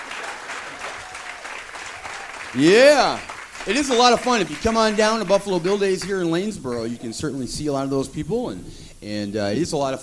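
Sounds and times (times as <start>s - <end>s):
audience applause at Buffalo Bill Days in Lanesboro: 0.0s - 7.2s
speech: 2.5s - 10.0s.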